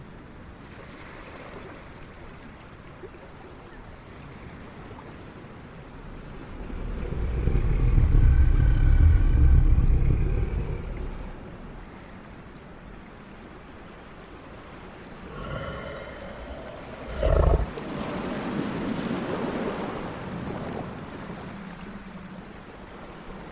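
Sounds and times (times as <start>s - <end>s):
soft ocean waves: 0.0s - 23.5s
steady hiss: 6.1s - 12.0s, 14.9s - 17.8s.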